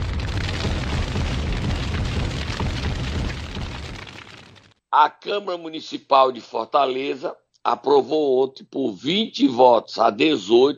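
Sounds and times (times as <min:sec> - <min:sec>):
massive MOAB bomb explosion sound effect: 0:00.0 - 0:04.8
speech: 0:05.0 - 0:10.7.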